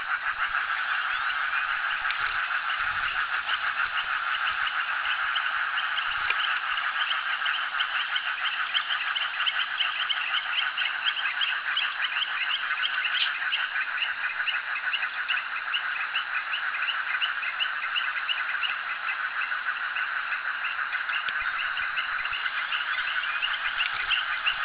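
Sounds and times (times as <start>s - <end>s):
frog chorus: 0.0s - 24.6s
faint clicks: 2.0s - 2.3s, 6.1s - 6.5s, 21.2s - 21.4s, 23.8s - 24.6s.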